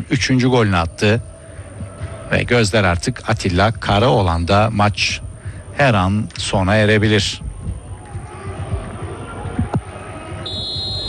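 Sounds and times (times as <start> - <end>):
speech: 0.0 - 1.3, 2.3 - 5.2, 5.8 - 7.4
referee blowing final whistle: 10.4 - 11.0.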